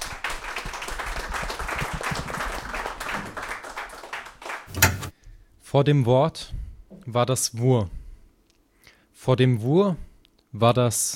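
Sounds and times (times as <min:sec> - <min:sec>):
audience applause: 0:00.0 - 0:04.7
speech: 0:05.7 - 0:08.0, 0:09.2 - 0:11.1.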